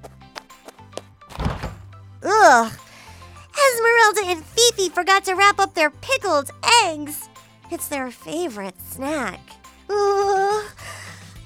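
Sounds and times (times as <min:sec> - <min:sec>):
refrigerator door thunks and clicks: 0:01.4 - 0:01.8
speech: 0:02.5 - 0:02.8, 0:03.8 - 0:10.7.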